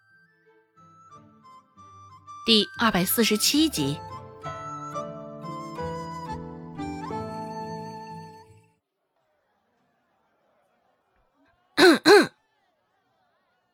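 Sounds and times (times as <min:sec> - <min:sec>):
speech: 0:02.5 - 0:04.1
throat clearing: 0:11.8 - 0:12.3.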